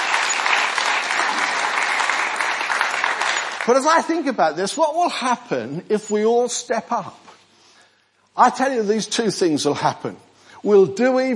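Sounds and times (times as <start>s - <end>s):
audience applause: 0.0s - 3.8s
speech: 3.7s - 7.2s, 8.4s - 11.3s.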